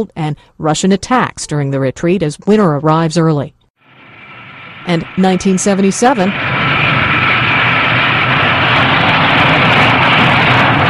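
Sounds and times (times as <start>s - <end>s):
speech: 0.0s - 3.6s, 4.8s - 6.7s
supersonic Concorde airliner jet roar landing in New York City: 3.8s - 10.8s.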